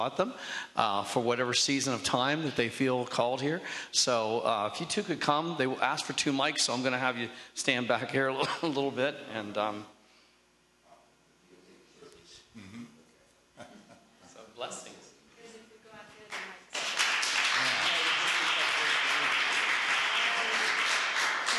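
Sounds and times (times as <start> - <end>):
speech: 0.0 - 9.9
mild audience applause: 16.3 - 21.5.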